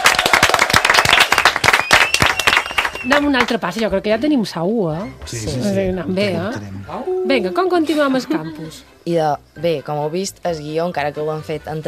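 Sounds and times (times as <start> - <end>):
loud applause: 0.0 - 3.3
speech: 3.0 - 11.8.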